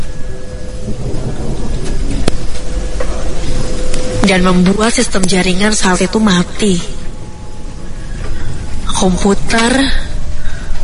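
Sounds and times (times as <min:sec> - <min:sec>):
loud thunderclap: 0:00.0 - 0:06.2
speech: 0:04.3 - 0:06.9, 0:09.0 - 0:10.1.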